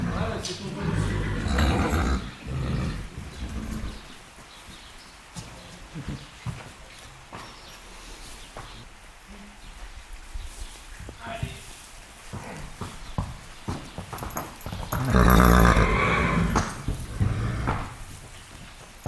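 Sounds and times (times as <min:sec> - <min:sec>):
horse whinnying: 0:00.0 - 0:04.1, 0:14.9 - 0:17.9.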